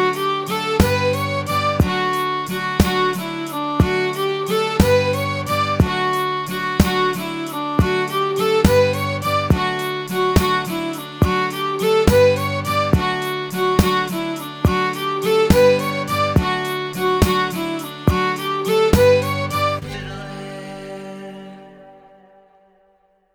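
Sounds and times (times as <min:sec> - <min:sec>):
jig tune: 0:00.0 - 0:20.3.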